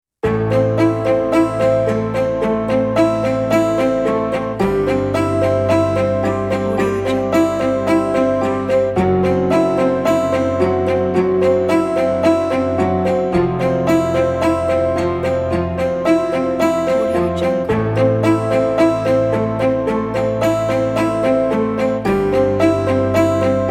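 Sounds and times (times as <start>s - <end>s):
intense drama soundtrack music: 0.3s - 23.6s.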